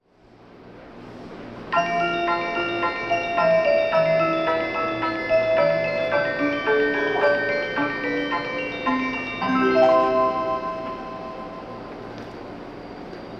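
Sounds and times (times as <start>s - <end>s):
melody: 1.7s - 11.9s.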